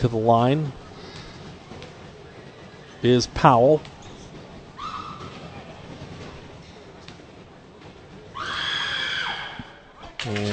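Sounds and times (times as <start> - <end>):
speech: 0.0 - 0.8, 3.0 - 4.0, 10.3 - 10.5
low murmur: 0.0 - 10.5
spectator screaming in arena: 8.4 - 9.8.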